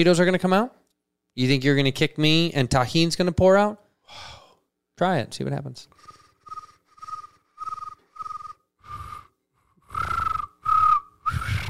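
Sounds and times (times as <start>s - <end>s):
speech: 0.0s - 0.8s, 1.4s - 4.4s, 5.0s - 5.9s
whistled imitation of a cricket: 6.5s - 9.3s, 10.0s - 11.5s.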